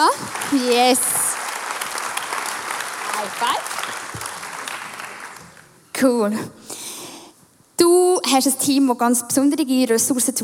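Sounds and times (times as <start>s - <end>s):
speech: 0.0s - 1.2s, 3.2s - 4.0s, 6.0s - 6.6s, 7.8s - 10.4s
audience applause: 0.0s - 5.8s.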